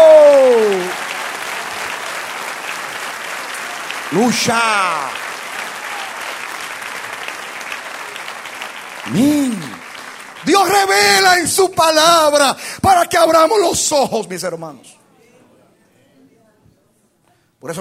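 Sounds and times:
audience applauding: 0.0 - 12.4
speech: 4.1 - 5.2, 9.1 - 9.7, 10.5 - 15.0.

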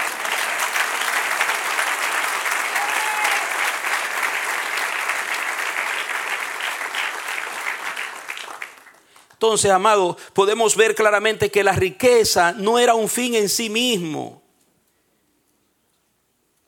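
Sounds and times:
audience applause: 0.0 - 9.4
speech: 9.4 - 14.4.

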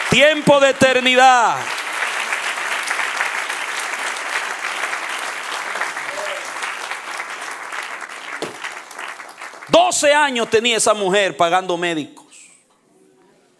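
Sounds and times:
audience applause: 0.0 - 10.6
speech: 0.1 - 1.8, 9.7 - 12.2.

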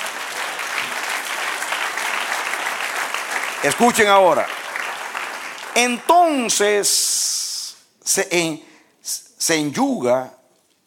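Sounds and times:
audience applause: 0.0 - 6.6
speech: 3.6 - 4.6, 5.8 - 7.3, 8.1 - 10.4.

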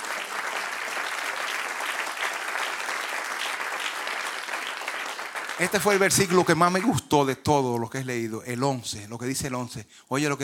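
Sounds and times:
audience applause: 0.0 - 7.0
speech: 5.6 - 10.4.

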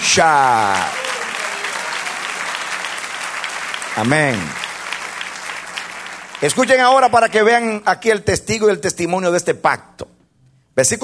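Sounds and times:
audience applause: 0.0 - 7.6
speech: 0.2 - 1.0, 4.0 - 4.6, 6.4 - 10.1, 10.8 - 11.0.

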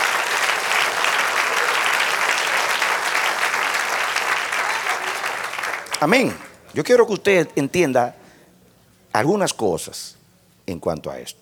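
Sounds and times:
audience applause: 0.0 - 6.7
speech: 6.0 - 8.2, 9.2 - 11.4.

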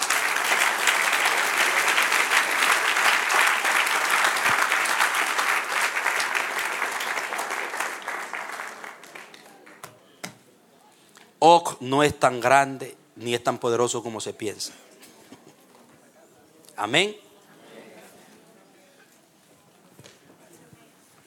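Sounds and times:
audience applause: 0.0 - 10.0
speech: 11.5 - 14.9, 16.8 - 17.2.

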